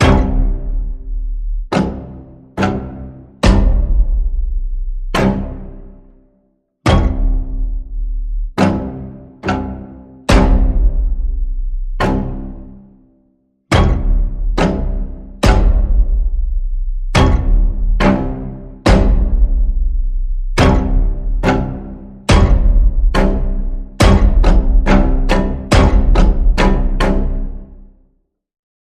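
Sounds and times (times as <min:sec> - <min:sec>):
string pulse in the key of C: 0:00.0 - 0:06.2, 0:06.9 - 0:13.0, 0:13.7 - 0:28.0.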